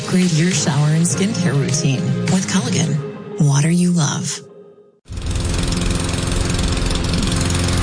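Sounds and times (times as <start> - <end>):
speech: 0.1 - 4.5
lawn mower engine: 5.1 - 7.8.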